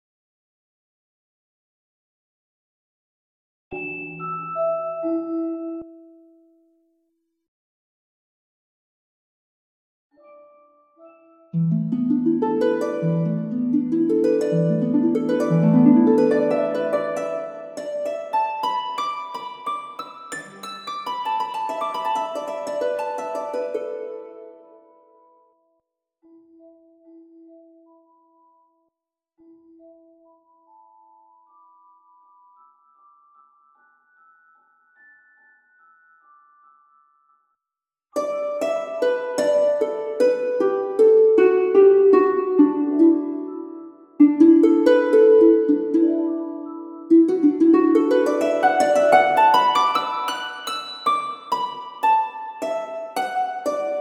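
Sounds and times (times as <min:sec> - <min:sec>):
harp: 0:10.2 - 0:25.2, 0:38.2 - 0:53.9.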